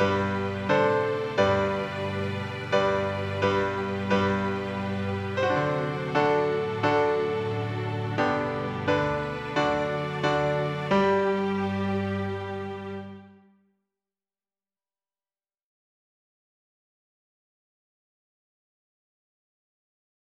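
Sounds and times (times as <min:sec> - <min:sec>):
children's song melody: 0:00.0 - 0:13.2.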